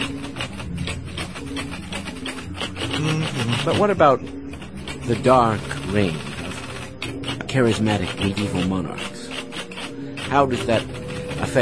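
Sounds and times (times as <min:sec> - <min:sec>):
steady mechanical hum of electric typewriters: 0:00.0 - 0:07.4
typing on old Selectric electric typewriters: 0:00.0 - 0:11.6
speech: 0:03.6 - 0:04.4, 0:05.1 - 0:06.3, 0:07.5 - 0:09.1, 0:10.3 - 0:10.9.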